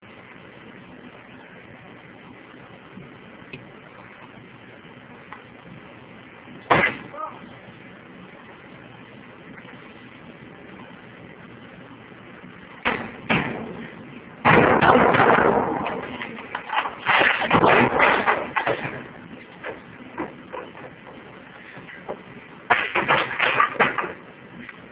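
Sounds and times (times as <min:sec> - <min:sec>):
smash: 0:06.7 - 0:07.2, 0:12.8 - 0:21.2, 0:22.2 - 0:24.2.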